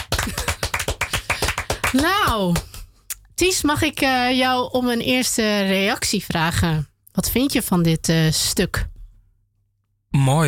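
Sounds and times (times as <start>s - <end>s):
audience applause: 0.0s - 2.3s
speech: 1.9s - 2.7s, 3.4s - 8.9s, 10.1s - 10.4s.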